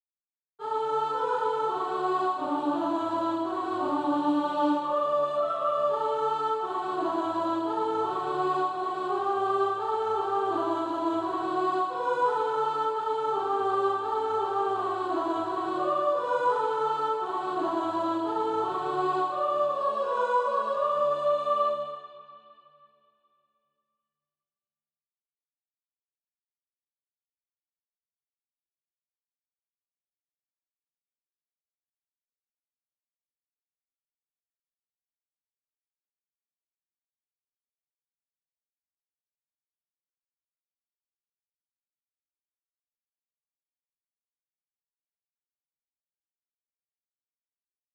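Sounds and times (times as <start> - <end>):
soprano singing: 0.6 - 22.5.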